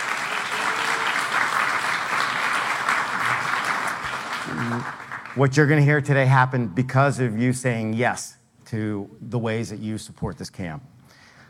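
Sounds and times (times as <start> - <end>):
crowd applause: 0.0 - 5.6
speech: 4.6 - 10.9.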